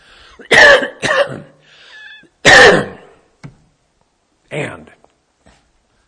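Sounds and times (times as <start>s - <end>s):
faint wheezy breath: 0.0s - 0.5s, 1.6s - 2.3s
man coughing after swallowing wrong: 0.4s - 1.6s, 2.4s - 3.2s.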